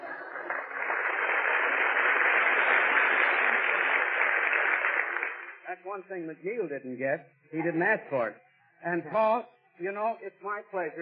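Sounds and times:
audience applause: 0:00.0 - 0:05.7
speech: 0:05.8 - 0:10.9.

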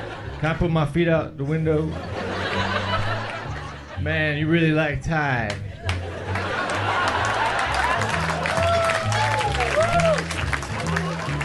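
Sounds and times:
laughter: 0:00.0 - 0:00.6, 0:01.4 - 0:04.1, 0:05.6 - 0:11.4
speech: 0:00.4 - 0:02.2, 0:04.0 - 0:05.7
stand-up comedy audience clapping: 0:05.5 - 0:11.4.

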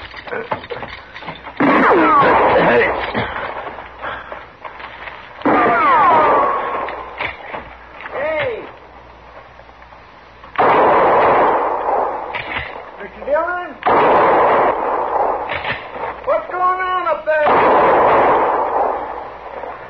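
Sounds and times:
gunshots in a radio drama: 0:00.0 - 0:04.2, 0:05.4 - 0:08.8, 0:10.6 - 0:19.8
voices: 0:00.0 - 0:04.8, 0:05.4 - 0:09.5, 0:12.6 - 0:13.9, 0:15.1 - 0:17.6.

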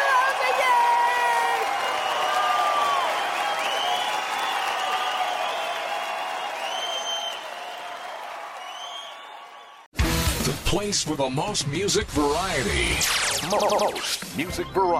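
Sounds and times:
audience applause at a stand-up comedy show in Santa Rosa: 0:00.0 - 0:09.9
speech: 0:10.7 - 0:14.9.

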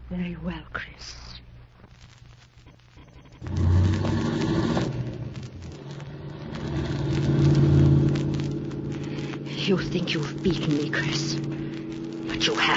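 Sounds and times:
speech: 0:00.1 - 0:01.4, 0:09.7 - 0:11.7, 0:12.4 - 0:12.7
car engine revving as the car drives off: 0:03.2 - 0:12.7.

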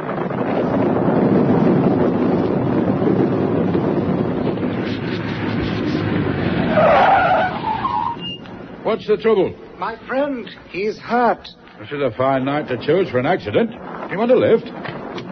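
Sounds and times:
car driving rumble: 0:00.0 - 0:15.3
car tires squealing as it brakes to a stop: 0:04.5 - 0:08.8
speech: 0:08.9 - 0:14.9.

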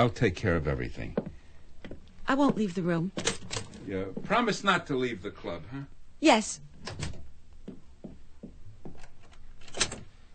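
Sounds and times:
speech: 0:00.0 - 0:01.2, 0:02.3 - 0:03.3, 0:03.9 - 0:07.1
door being closed and locked: 0:03.2 - 0:03.8, 0:06.8 - 0:07.3, 0:09.6 - 0:10.1.

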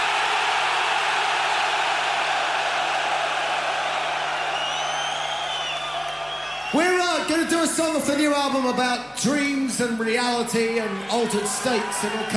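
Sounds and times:
massive stadium crowd of metal fans screaming and roaring: 0:00.0 - 0:08.9, 0:10.2 - 0:12.3
shrill whistles: 0:04.4 - 0:06.9
speech: 0:06.7 - 0:12.3.

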